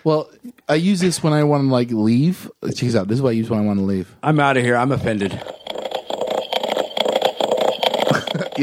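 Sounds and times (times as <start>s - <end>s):
speech: 0.0s - 5.6s
coconut shells clopping like horse hooves: 5.1s - 8.6s.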